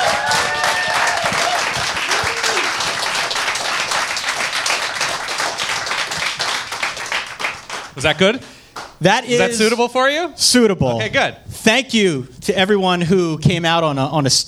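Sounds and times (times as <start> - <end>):
live audience applause: 0.0 - 9.0
speech: 8.0 - 14.4.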